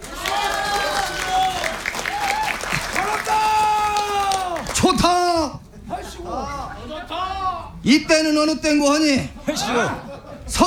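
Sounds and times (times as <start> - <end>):
crowd clapping: 0.0 - 5.2
laughter: 0.0 - 7.8, 8.4 - 10.6
scattered voices calling out: 0.0 - 10.6
speech: 7.8 - 10.6.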